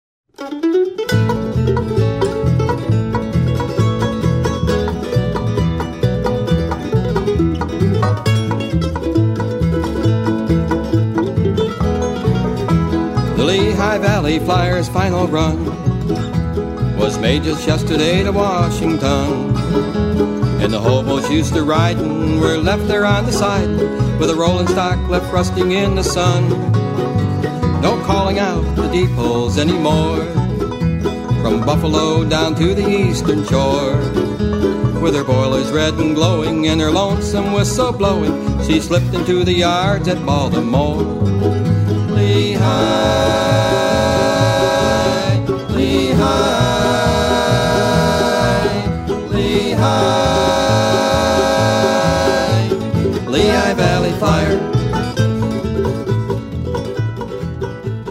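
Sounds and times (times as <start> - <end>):
bluegrass music: 0.3 - 58.0.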